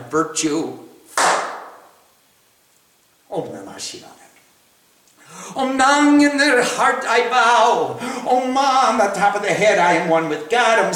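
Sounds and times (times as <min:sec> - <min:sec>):
speech: 0:00.1 - 0:00.8, 0:03.4 - 0:04.2, 0:05.6 - 0:10.9
hand clap: 0:01.1 - 0:01.9.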